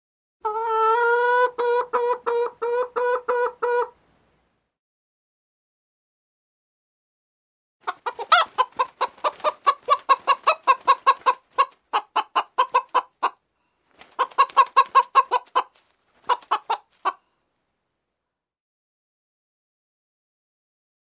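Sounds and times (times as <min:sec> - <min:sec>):
chicken clucking: 0:00.4 - 0:04.0, 0:07.8 - 0:17.3.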